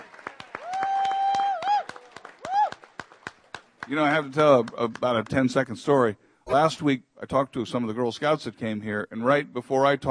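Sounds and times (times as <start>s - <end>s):
people cheering woo-hoo: 0.0s - 3.4s
applause: 0.0s - 5.4s
speech: 3.9s - 10.1s.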